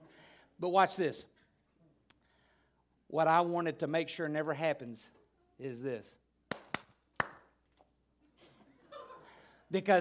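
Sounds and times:
speech: 0:00.6 - 0:01.4, 0:03.1 - 0:06.2, 0:09.7 - 0:09.9
lone person clapping: 0:06.5 - 0:07.5.

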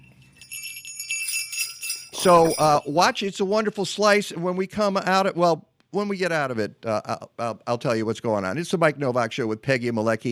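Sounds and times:
hand bell ringing: 0:00.0 - 0:03.2
speech: 0:02.2 - 0:10.2.

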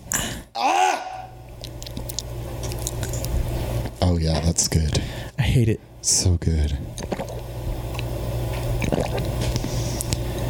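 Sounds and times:
low steady hum: 0:00.0 - 0:10.4
ASMR recording of someone drinking with lip smacking: 0:01.5 - 0:03.7, 0:07.0 - 0:10.3
speech: 0:04.1 - 0:07.3.

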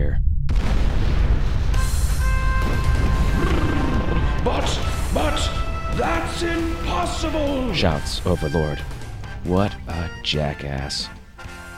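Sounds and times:
thunderous rumbling of fortress wall breaking: 0:00.0 - 0:09.2
speech: 0:07.2 - 0:11.2.

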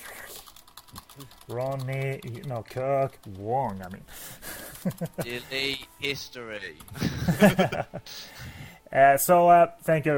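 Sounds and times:
computer keyboards clattering: 0:00.0 - 0:07.7
speech: 0:01.2 - 0:08.4, 0:09.0 - 0:10.1
laughter: 0:04.4 - 0:05.6, 0:06.9 - 0:08.4.

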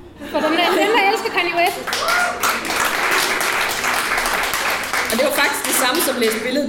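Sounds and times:
speech: 0:00.3 - 0:02.4, 0:05.2 - 0:06.6
audience clapping: 0:01.6 - 0:06.6.

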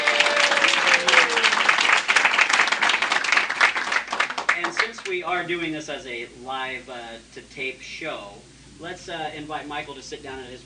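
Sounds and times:
audience applause at a live-to-tape railroad show: 0:00.0 - 0:05.1
speech: 0:05.1 - 0:10.6.

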